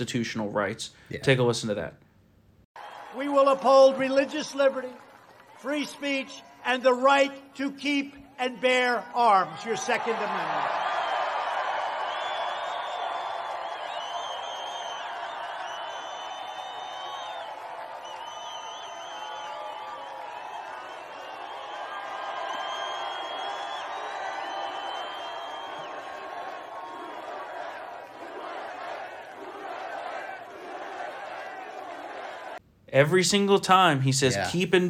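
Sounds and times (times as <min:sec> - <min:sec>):
speech: 0:00.0 - 0:02.0, 0:03.1 - 0:05.0, 0:05.6 - 0:10.8, 0:33.0 - 0:34.8
people clapping: 0:02.8 - 0:07.4, 0:09.4 - 0:32.6
rally crowd cheering: 0:02.8 - 0:32.6.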